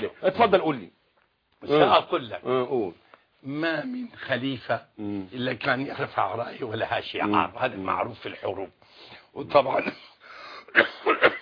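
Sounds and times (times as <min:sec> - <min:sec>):
speech: 0:00.0 - 0:01.0, 0:01.6 - 0:10.1, 0:10.7 - 0:11.2
person coughing or clearing throat: 0:09.8 - 0:11.3.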